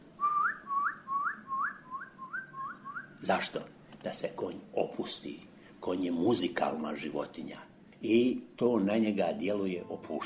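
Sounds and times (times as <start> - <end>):
person whistling: 0.2 - 3.1
speech: 3.2 - 10.2.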